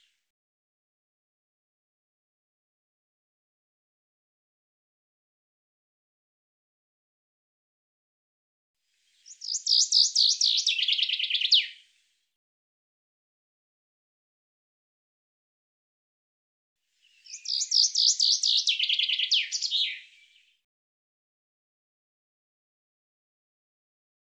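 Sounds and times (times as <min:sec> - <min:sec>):
bird trilling song: 0:09.2 - 0:11.8, 0:17.0 - 0:20.6.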